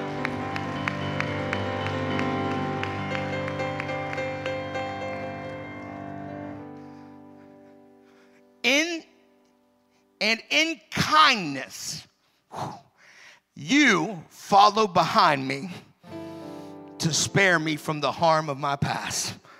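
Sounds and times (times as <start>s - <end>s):
rhythmic clapping from a group: 0.0s - 6.9s
sustained organ or keyboard chord: 0.0s - 8.6s, 16.1s - 18.1s
speech: 10.2s - 12.8s, 13.6s - 15.8s, 17.0s - 19.4s.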